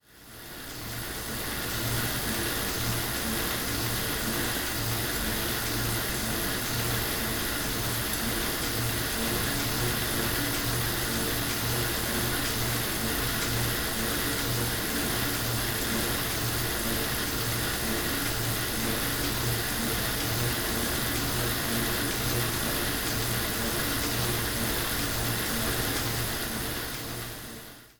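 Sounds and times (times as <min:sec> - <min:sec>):
exercise bike: 0:00.0 - 0:27.9.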